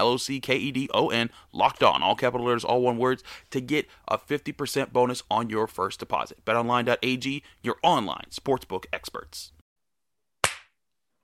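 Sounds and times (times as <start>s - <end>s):
speech: 0.0s - 9.6s
single hand clap as editing sync marker: 10.4s - 10.7s.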